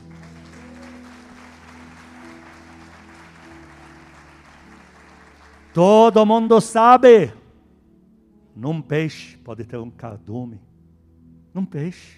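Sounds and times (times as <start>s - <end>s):
audience applause: 0.0s - 6.2s
speech: 5.8s - 7.4s, 8.6s - 10.7s, 11.6s - 12.1s.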